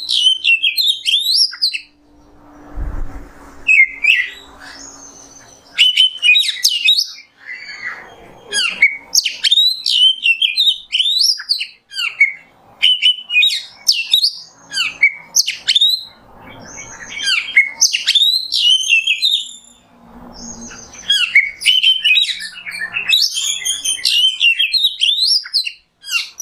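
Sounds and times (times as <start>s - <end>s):
Oriental magpie-robin singing: 0.0s - 2.0s, 3.7s - 19.8s, 20.4s - 26.3s
low rumble: 1.9s - 5.4s.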